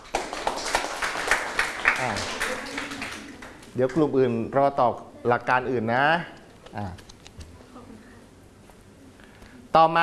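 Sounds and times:
classroom applause for a classmate: 0.0s - 3.8s
speech: 2.0s - 2.4s, 3.8s - 7.0s, 9.8s - 10.0s.

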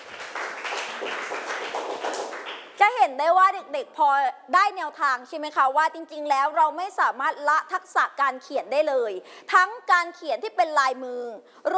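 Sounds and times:
students applauding classmates in a school class: 0.0s - 2.8s
speech: 2.8s - 11.7s.

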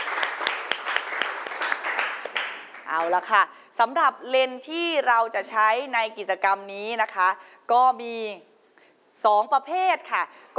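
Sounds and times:
classroom applause for a student group: 0.0s - 3.3s
speech: 2.9s - 8.5s, 9.1s - 10.5s.

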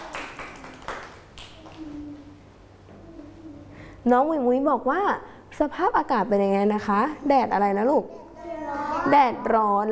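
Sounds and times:
hand claps: 0.0s - 2.0s
speech: 4.0s - 8.2s, 9.0s - 9.9s.

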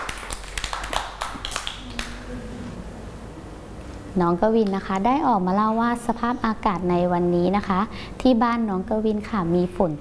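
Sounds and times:
children clapping: 0.0s - 2.3s
speech: 4.2s - 9.9s.

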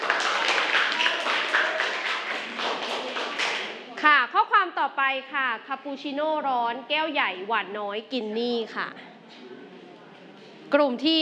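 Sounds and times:
group clapping hands: 0.0s - 3.9s
speech: 4.8s - 9.1s, 10.7s - 11.2s.

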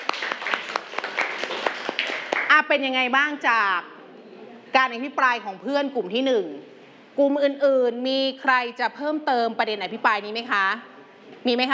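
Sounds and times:
students in a classroom clapping for a classmate: 0.0s - 2.6s
speech: 2.6s - 3.9s, 4.7s - 11.7s.

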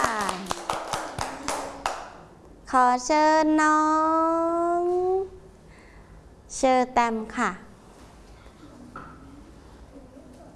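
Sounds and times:
children clapping for a classmate: 0.0s - 2.2s
speech: 2.7s - 5.4s, 6.5s - 7.7s.

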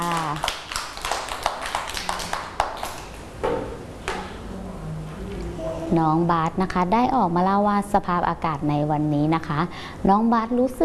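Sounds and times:
children clapping: 0.0s - 3.3s
speech: 5.9s - 10.8s.

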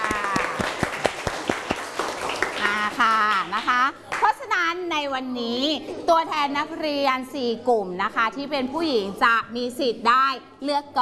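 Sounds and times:
students clapping: 0.0s - 4.3s
speech: 4.7s - 11.0s.

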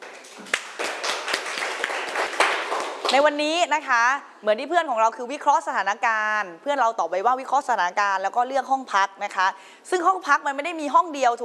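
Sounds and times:
classroom applause for a student: 0.0s - 3.2s
speech: 3.1s - 11.4s.

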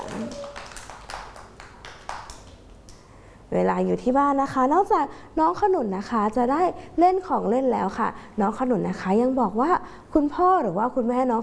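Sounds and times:
faint high tone: 0.0s - 0.6s
children clapping hands: 0.0s - 3.0s
speech: 3.5s - 11.4s.

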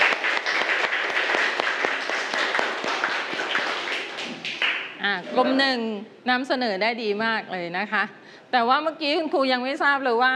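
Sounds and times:
classroom applause: 0.0s - 5.5s
speech: 5.0s - 10.3s.

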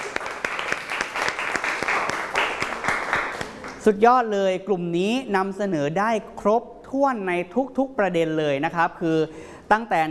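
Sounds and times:
crowd applause: 0.0s - 3.8s
speech: 3.8s - 10.0s.

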